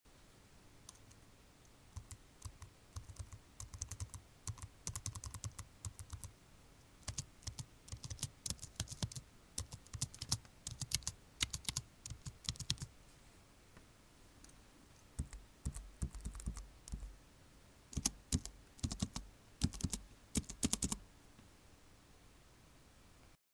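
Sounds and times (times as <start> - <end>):
keyboard keystrokes: 2.0 - 6.3, 7.0 - 12.9, 15.2 - 17.1, 18.0 - 21.0.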